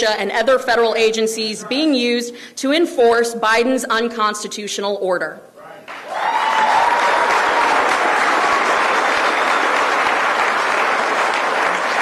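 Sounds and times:
speech: 0.0 - 5.5
crowd applause: 5.9 - 12.0.

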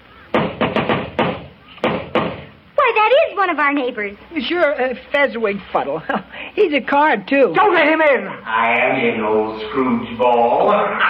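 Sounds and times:
knocking on a door: 0.3 - 2.5
speech: 3.4 - 11.0.

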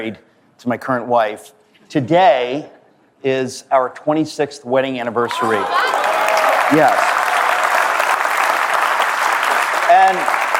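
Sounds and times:
speech: 0.0 - 6.0, 6.7 - 7.1
crowd applauding: 5.3 - 10.5.

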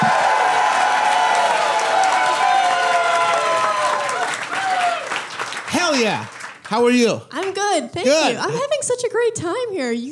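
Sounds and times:
audience whooping at a live comedy show in Portland: 0.0 - 5.1
audience applause at a live comedy show in Portland: 0.0 - 7.2
speech: 6.0 - 10.1.

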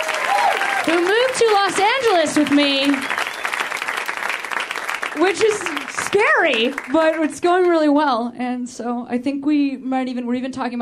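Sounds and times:
audience applause: 0.0 - 7.5
speech: 0.9 - 3.2, 5.2 - 10.8.

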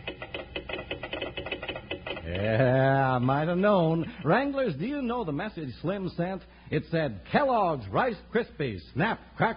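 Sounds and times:
telegraph key tapping Morse code: 0.0 - 2.5
speech: 2.3 - 9.5.

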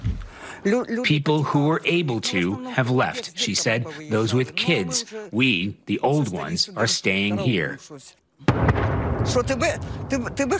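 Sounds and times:
speech: 0.6 - 8.6, 9.2 - 10.5
artillery explosions: 8.5 - 10.5.

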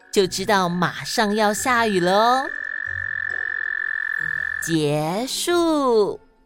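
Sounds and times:
speech: 0.2 - 2.6, 4.6 - 6.2
toad croaking: 0.9 - 5.6.

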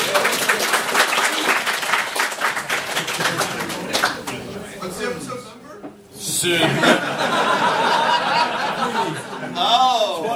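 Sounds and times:
round of applause: 0.0 - 4.5
laughter: 6.2 - 10.3
speech: 6.4 - 7.6, 9.5 - 10.3.

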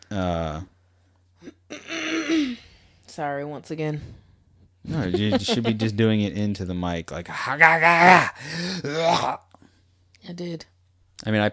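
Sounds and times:
speech: 0.1 - 0.7, 3.2 - 4.2, 4.8 - 9.5, 10.3 - 11.5
person clearing throat: 1.4 - 2.6, 8.2 - 9.4
laughter: 4.9 - 6.0.

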